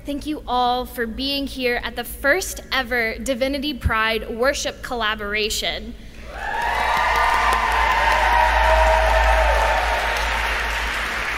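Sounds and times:
speech: 0:00.0 - 0:06.0
crowd clapping: 0:06.2 - 0:11.3.

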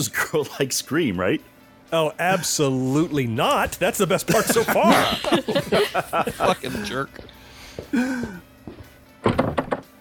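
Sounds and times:
speech: 0:00.0 - 0:08.5
laughter: 0:04.2 - 0:07.2, 0:07.9 - 0:08.4
door shutting: 0:09.2 - 0:09.9.

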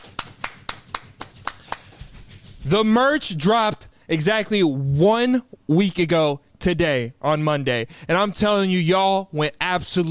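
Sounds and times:
clapping: 0:00.0 - 0:02.3
speech: 0:02.7 - 0:10.0.

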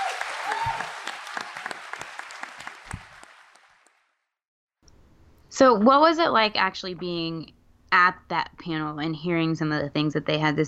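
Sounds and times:
audience applause: 0:00.0 - 0:04.1
speech: 0:05.6 - 0:10.6.

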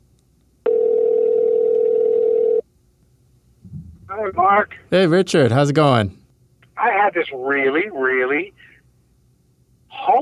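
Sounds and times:
telephone dial tone of an outgoing call: 0:00.6 - 0:02.6
speech: 0:04.2 - 0:06.2, 0:07.1 - 0:08.7.

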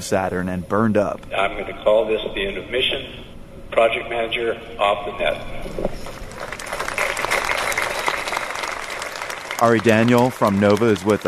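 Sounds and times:
speech: 0:00.0 - 0:05.9, 0:09.6 - 0:11.2
applause in mission control: 0:06.2 - 0:11.2.

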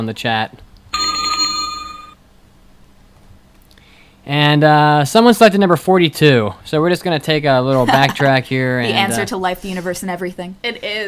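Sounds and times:
speech: 0:00.0 - 0:00.6, 0:04.2 - 0:11.0
bell ringing: 0:01.0 - 0:02.2.

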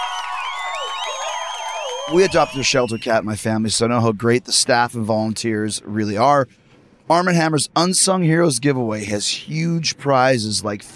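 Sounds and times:
crowd applauding and cheering: 0:00.0 - 0:03.1
whoops and whistles: 0:00.0 - 0:03.2
speech: 0:02.1 - 0:10.9.

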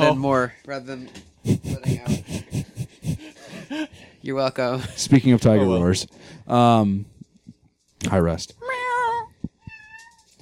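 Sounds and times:
speech: 0:00.0 - 0:02.7, 0:03.7 - 0:07.1, 0:08.0 - 0:08.7
cat meowing: 0:09.6 - 0:10.3.

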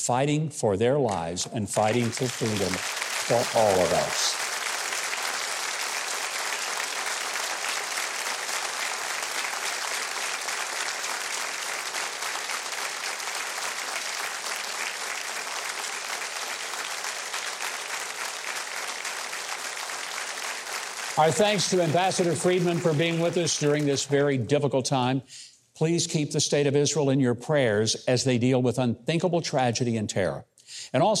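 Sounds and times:
speech: 0:00.0 - 0:04.4, 0:21.2 - 0:31.1
audience applause: 0:01.8 - 0:24.5.

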